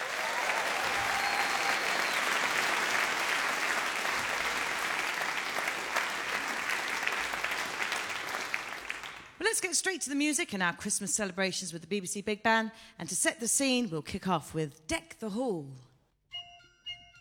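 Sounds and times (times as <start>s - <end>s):
audience applause welcoming a big band at a Christmas concert: 0.0s - 9.4s
speech: 9.5s - 15.9s.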